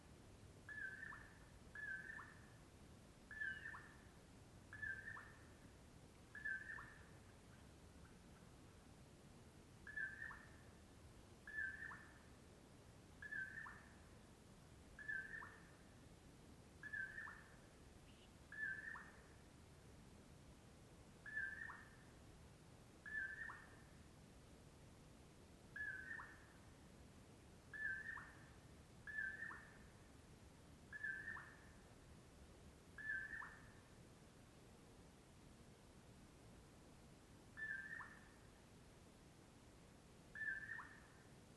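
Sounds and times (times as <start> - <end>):
Common Poorwill whistled call: 0.7 - 2.5, 3.3 - 4.0, 4.7 - 5.4, 6.4 - 7.1, 9.9 - 10.6, 11.5 - 12.1, 13.2 - 13.9, 15.0 - 15.7, 16.8 - 19.2, 21.3 - 22.0, 23.0 - 23.7, 25.8 - 26.4, 27.7 - 28.4, 29.1 - 29.8, 30.9 - 31.7, 33.0 - 33.7, 37.6 - 38.4, 40.4 - 41.2.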